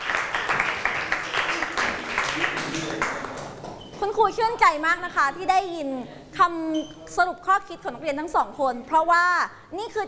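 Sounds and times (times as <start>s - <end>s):
classroom applause: 0.0s - 3.6s
speech: 4.2s - 10.0s.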